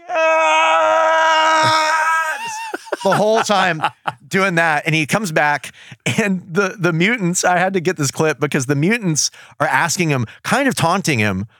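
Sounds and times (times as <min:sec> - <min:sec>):
Mum-Ra blood-curdling painful scream: 0:00.0 - 0:03.2
laughter: 0:01.6 - 0:05.0
speech: 0:03.0 - 0:11.5.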